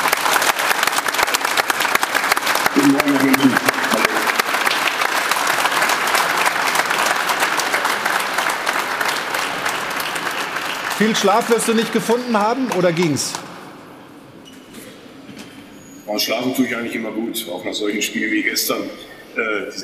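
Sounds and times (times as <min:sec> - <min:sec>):
crowd applauding: 0:00.0 - 0:13.7
person's voice: 0:02.7 - 0:04.6, 0:11.0 - 0:13.3
speech: 0:02.8 - 0:03.7, 0:11.0 - 0:13.5, 0:16.2 - 0:19.8.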